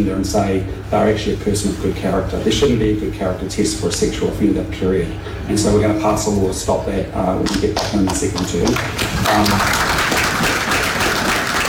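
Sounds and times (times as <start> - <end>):
speech: 0.0 - 9.9
audience applause: 7.5 - 11.6.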